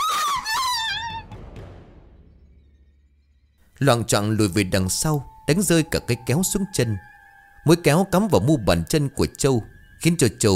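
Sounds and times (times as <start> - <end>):
woman's terrified scream sound effect: 0.0 - 1.3
speech: 3.8 - 10.5.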